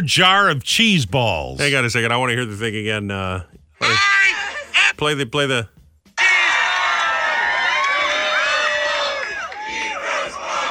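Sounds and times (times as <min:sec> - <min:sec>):
speech: 0:00.0 - 0:05.8
crowd cheering: 0:03.8 - 0:04.9, 0:06.2 - 0:10.6.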